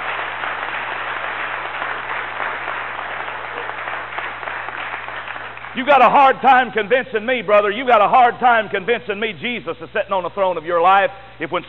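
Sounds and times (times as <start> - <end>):
audience applauding and cheering: 0.0 - 6.2
speech: 5.8 - 11.6.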